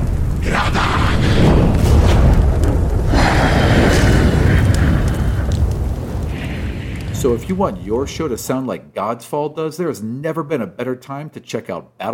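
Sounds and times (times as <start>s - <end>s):
fire elemental combat sound effect: 0.0s - 8.8s
speech: 7.2s - 12.1s.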